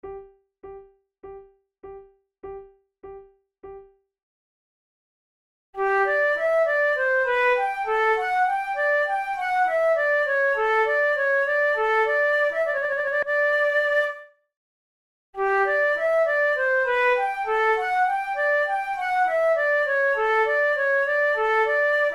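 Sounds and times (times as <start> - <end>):
allemande played on flute: 5.8 - 14.3, 15.4 - 22.1.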